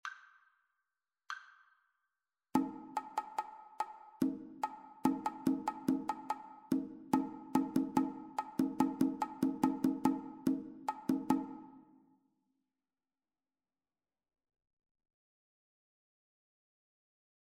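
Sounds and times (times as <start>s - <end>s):
two-part rhythm: 2.6s - 11.8s.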